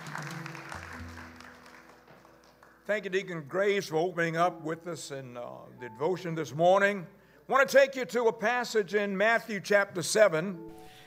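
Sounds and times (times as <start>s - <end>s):
church congregation clapping hands: 0.0s - 3.5s
speech: 2.9s - 10.8s.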